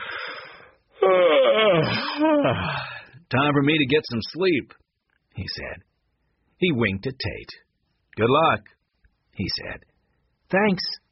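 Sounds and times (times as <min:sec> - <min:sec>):
loud yawn: 0:00.0 - 0:03.1
speech: 0:01.8 - 0:04.8, 0:05.4 - 0:05.9, 0:06.6 - 0:07.6, 0:08.2 - 0:08.8, 0:09.4 - 0:09.9, 0:10.5 - 0:11.0.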